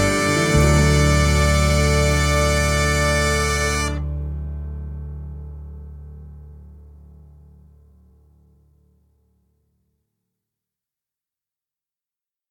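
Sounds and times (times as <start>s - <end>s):
backing track: 0.0s - 4.1s.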